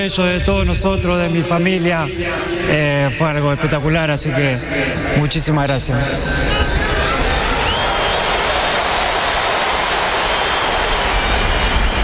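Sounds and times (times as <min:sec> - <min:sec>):
speech: 0:00.0 - 0:07.2
stadium crowd applause at the Monumental: 0:06.8 - 0:12.0.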